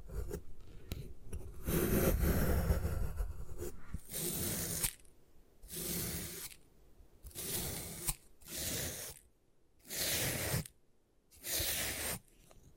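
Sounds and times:
gym chalk crushed and scraped: 0:01.6 - 0:05.1, 0:05.6 - 0:06.6, 0:07.2 - 0:12.7.

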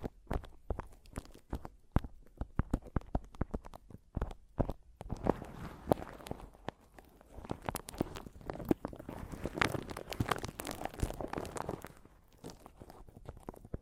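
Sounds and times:
microphone tapping: 0:00.0 - 0:12.0
bright microphone scratching and rustling: 0:05.0 - 0:13.8.

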